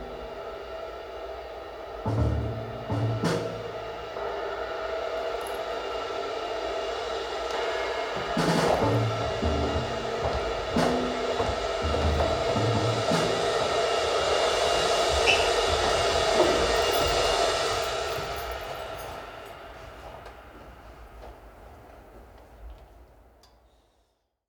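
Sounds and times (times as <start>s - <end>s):
drum: 2.0s - 19.0s.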